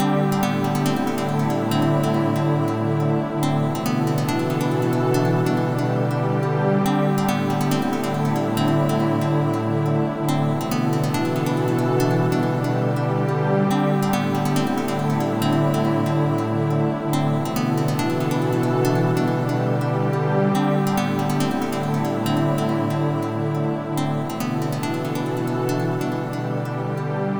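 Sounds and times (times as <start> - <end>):
chill music: 0.0 - 27.3.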